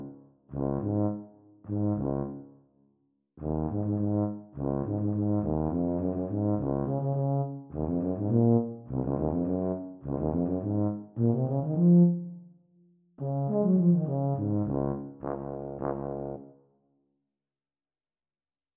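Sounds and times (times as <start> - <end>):
E-flat tuba duet at exam speed: 0.0 - 2.4, 3.4 - 12.4, 13.2 - 16.4.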